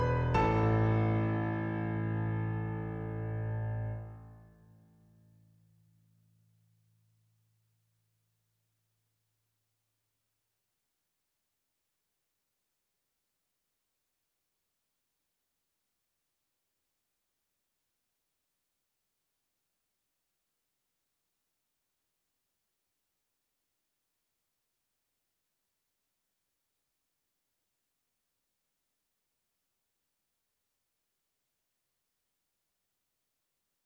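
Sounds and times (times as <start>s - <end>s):
piano: 0.0s - 4.7s.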